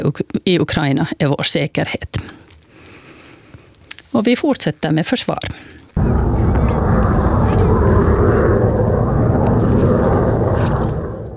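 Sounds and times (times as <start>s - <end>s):
speech: 0.0s - 2.4s, 4.1s - 6.2s
F-35A fighter jets arriving in Finland: 6.0s - 11.3s.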